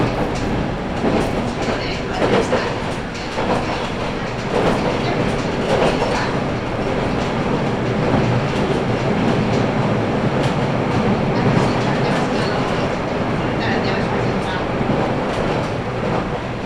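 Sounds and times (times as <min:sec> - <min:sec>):
local train rumbling on the Sasebo Line between Arita and Kitakata: 0:00.0 - 0:16.6
rail clacks: 0:00.0 - 0:16.6.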